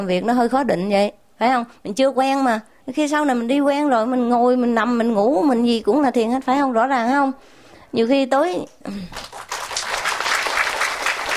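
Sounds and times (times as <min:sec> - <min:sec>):
speech: 0:00.0 - 0:09.4
audience applause at a meditation teaching: 0:09.2 - 0:11.3.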